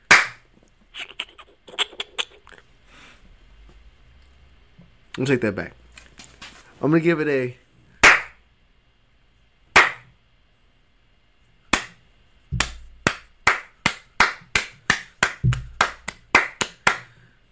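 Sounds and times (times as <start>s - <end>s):
booty slaps: 0.0s - 0.4s, 8.0s - 8.4s, 9.8s - 10.1s, 11.7s - 17.1s
sharp claps: 0.0s - 0.4s, 8.0s - 8.4s, 9.8s - 10.1s, 11.7s - 12.0s, 12.6s - 17.2s
speech: 5.2s - 5.8s, 6.8s - 7.6s.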